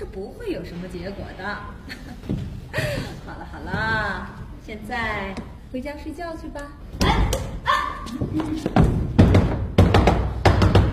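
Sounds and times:
speech: 0:00.0 - 0:07.5, 0:08.1 - 0:09.0
pounding on a door: 0:08.8 - 0:10.9.

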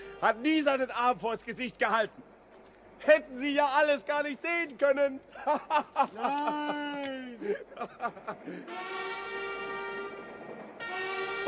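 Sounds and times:
train horn-like tone in a radio drama: 0:00.0 - 0:00.5, 0:08.6 - 0:11.4
speech: 0:00.2 - 0:02.3, 0:03.0 - 0:09.0
laughter: 0:05.3 - 0:08.7.

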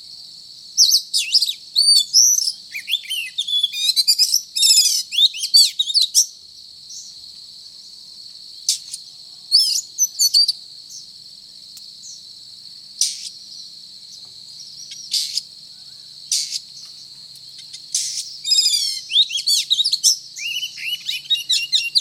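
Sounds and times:
Oriental magpie-robin singing: 0:00.8 - 0:06.3, 0:14.6 - 0:15.5, 0:16.3 - 0:16.7, 0:17.6 - 0:22.0.

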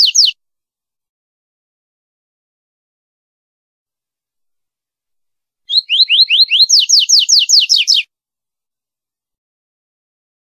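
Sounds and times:
seedeater song with slurred whistles: 0:00.0 - 0:00.4, 0:05.7 - 0:08.1.

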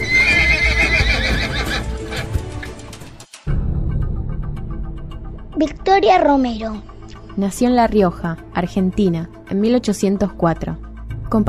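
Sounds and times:
horses neighing: 0:00.0 - 0:02.8
hooves approaching: 0:00.0 - 0:03.4
speech: 0:05.6 - 0:11.4.

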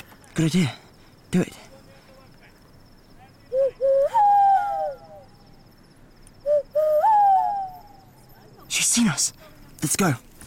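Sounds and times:
speech: 0:00.4 - 0:01.7, 0:09.9 - 0:10.3
person imitating a bird call: 0:03.5 - 0:05.4, 0:06.5 - 0:08.2.

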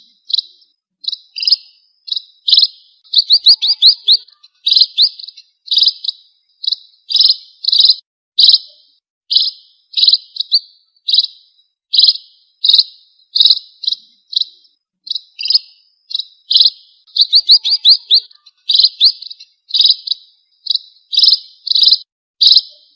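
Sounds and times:
red-throated parrotfinch Erythrura psittacea song: 0:00.0 - 0:22.9.

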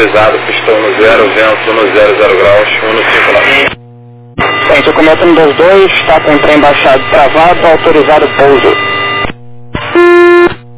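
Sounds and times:
speech: 0:00.0 - 0:03.7, 0:04.4 - 0:08.9
radio beep tone: 0:04.4 - 0:10.5.

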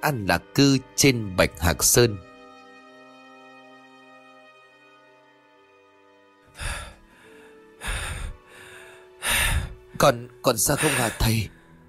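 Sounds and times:
speech: 0:00.0 - 0:02.3, 0:10.0 - 0:11.6
heavy panting breaths: 0:06.6 - 0:10.0, 0:10.7 - 0:11.8.

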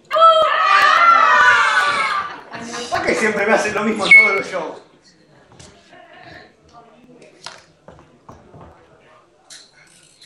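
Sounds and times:
circus audience screaming: 0:00.1 - 0:02.5
speech: 0:03.2 - 0:04.9.

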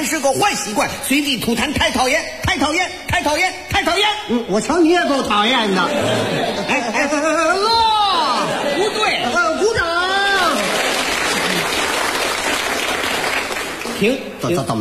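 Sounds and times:
speech: 0:00.1 - 0:07.8, 0:14.0 - 0:14.7
laughter: 0:05.0 - 0:12.0
audience applause: 0:10.0 - 0:14.1.

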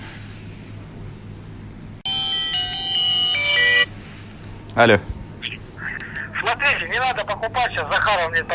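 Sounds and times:
phone call-waiting ringtone: 0:02.0 - 0:04.1
speech: 0:04.8 - 0:05.1, 0:07.0 - 0:08.5.

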